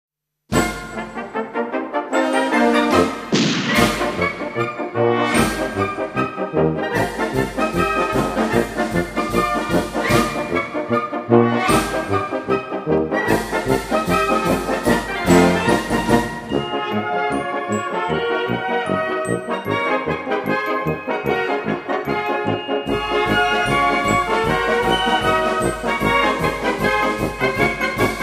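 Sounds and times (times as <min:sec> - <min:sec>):
polka music: 0:00.5 - 0:28.2.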